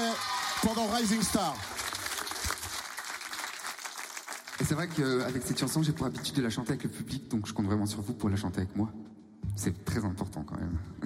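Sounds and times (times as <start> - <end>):
audience applause: 0.0 - 5.9
speech: 0.6 - 1.8, 4.6 - 11.0.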